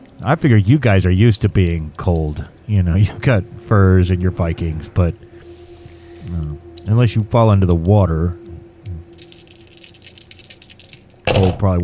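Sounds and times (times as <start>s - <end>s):
speech: 0.2s - 5.3s, 6.2s - 8.4s, 11.4s - 11.8s
dice rolling: 9.1s - 11.2s.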